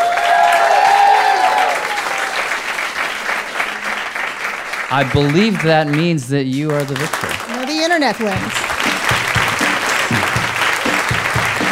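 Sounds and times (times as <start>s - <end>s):
whistles and cheers: 0.0s - 2.5s
audience applause: 0.0s - 11.7s
speech: 4.9s - 8.7s.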